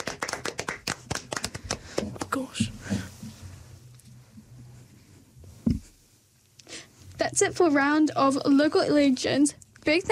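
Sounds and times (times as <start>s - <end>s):
round of applause: 0.0s - 2.4s
speech: 2.4s - 3.0s, 7.4s - 10.1s.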